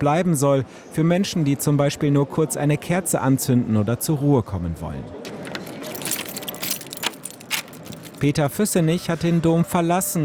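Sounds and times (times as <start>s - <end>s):
speech: 0.0s - 5.4s, 8.2s - 10.2s
bunch of keys jangling to call a cathedral lift cage: 5.5s - 8.4s.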